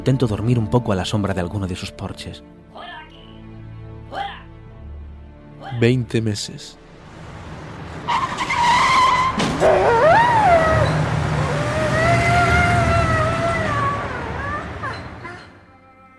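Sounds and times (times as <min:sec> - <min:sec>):
speech: 0:00.0 - 0:02.9, 0:05.7 - 0:06.8, 0:09.6 - 0:10.0
car tires screeching in a long skid: 0:07.4 - 0:15.6
dog yelping after being hit by a car: 0:09.6 - 0:15.6.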